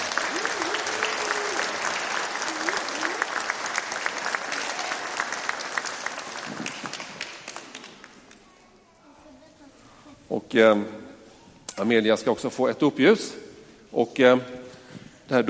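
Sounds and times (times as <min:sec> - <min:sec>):
audience applause: 0:00.0 - 0:08.4
speech: 0:10.4 - 0:11.0, 0:11.8 - 0:14.6, 0:15.3 - 0:15.4.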